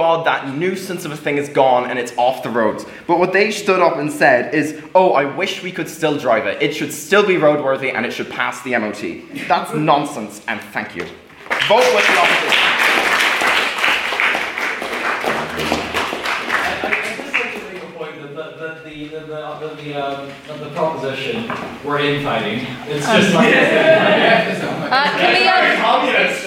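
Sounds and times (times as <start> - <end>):
speech: 0.0 - 12.6, 19.8 - 26.4
audience applause: 11.4 - 18.0, 24.9 - 26.1
laughter: 16.5 - 17.8, 22.9 - 26.4.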